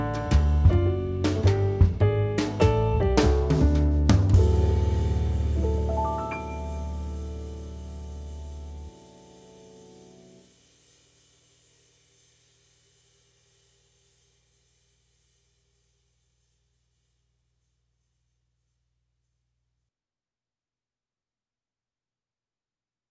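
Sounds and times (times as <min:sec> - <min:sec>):
105 BPM backing track: 0:00.0 - 0:08.9.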